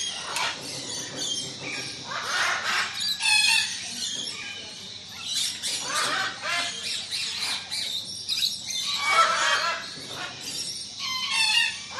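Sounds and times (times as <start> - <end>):
parakeets: 0.0 - 11.9
parrots: 0.0 - 11.9
tropical aviary birds: 0.0 - 11.9.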